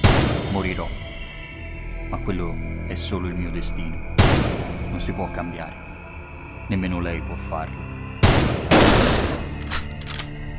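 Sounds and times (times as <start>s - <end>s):
speech: 0.6s - 1.1s, 2.1s - 5.9s, 6.7s - 7.9s
gunshots fired in an audio drama: 8.2s - 9.6s.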